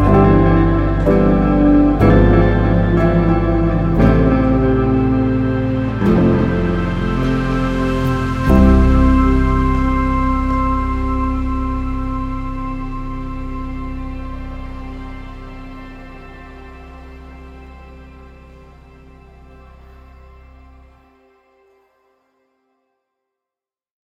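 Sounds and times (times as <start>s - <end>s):
meditation music: 0.0s - 23.0s.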